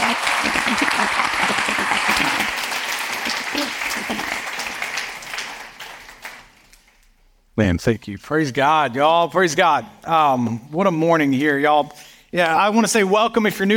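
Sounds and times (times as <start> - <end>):
church congregation at Mercy Church applauding: 0.0 - 7.1
speech: 7.6 - 13.7.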